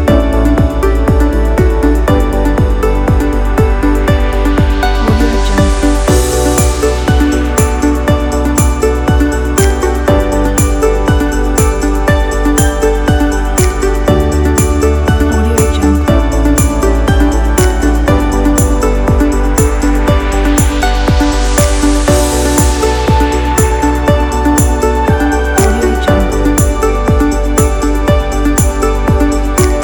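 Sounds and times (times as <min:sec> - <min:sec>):
motivational corporate music: 0:00.0 - 0:29.8.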